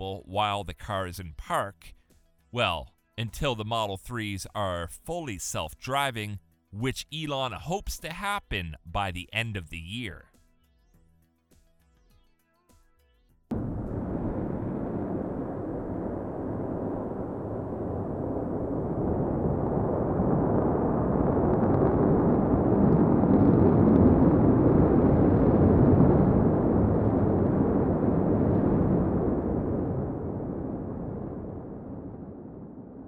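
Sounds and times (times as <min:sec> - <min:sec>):
speech: 0:00.0 - 0:10.3
Starhopper Raptor rocket engine firing during test hover: 0:13.5 - 0:33.0.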